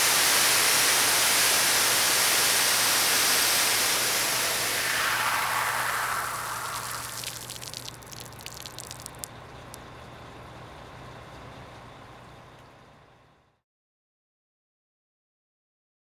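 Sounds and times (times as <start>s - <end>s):
fire hose spraying: 0.2s - 9.8s.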